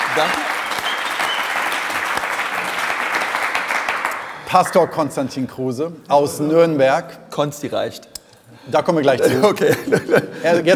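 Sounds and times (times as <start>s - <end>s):
crowd clapping: 0.0s - 4.9s
speech: 0.2s - 0.5s, 4.5s - 10.7s
laughter: 9.2s - 10.7s.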